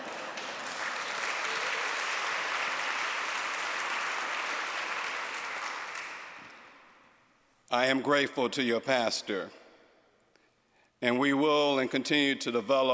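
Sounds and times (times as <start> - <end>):
audience applauding: 0.0 - 6.6
speech: 7.7 - 9.6, 11.0 - 12.9.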